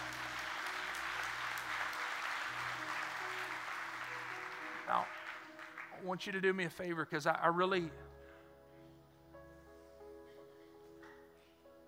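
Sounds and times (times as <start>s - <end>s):
audience clapping: 0.0s - 6.9s
speech: 4.9s - 5.2s, 6.0s - 8.1s.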